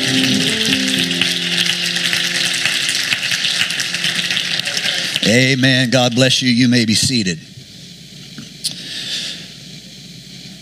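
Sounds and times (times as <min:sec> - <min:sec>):
low sustained musical tones: 0:00.0 - 0:06.2
crowd clapping in praise: 0:00.0 - 0:06.7
speech: 0:05.3 - 0:07.5.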